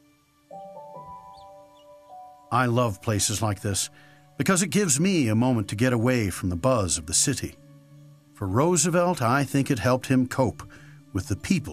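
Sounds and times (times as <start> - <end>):
quiet forest ambience: 0.0 - 9.7
high-pitched bird chirps: 0.5 - 2.5
speech: 2.5 - 7.7, 8.4 - 11.7.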